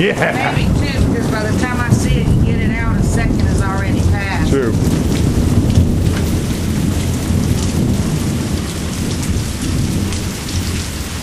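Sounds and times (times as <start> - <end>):
laughter: 0.0 - 1.1
speech: 0.0 - 2.3, 3.2 - 5.1
heavy rain: 0.0 - 11.2
rumble of thunder: 0.6 - 11.2.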